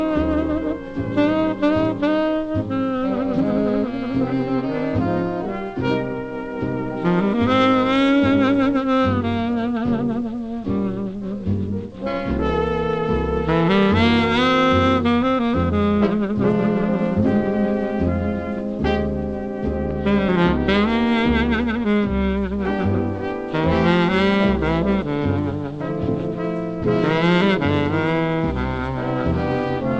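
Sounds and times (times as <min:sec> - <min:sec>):
jazz music: 0:00.0 - 0:29.9.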